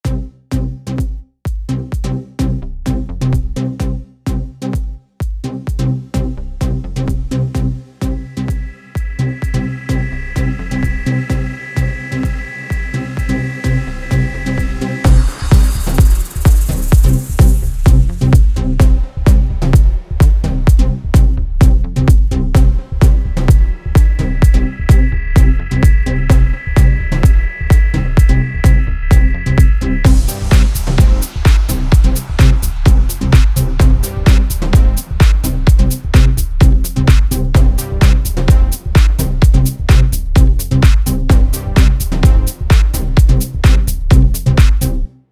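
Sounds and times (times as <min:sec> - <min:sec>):
house music: 0:00.0 - 0:45.2.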